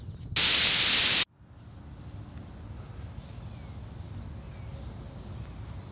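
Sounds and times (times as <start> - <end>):
forest ambience: 0.4 - 1.2.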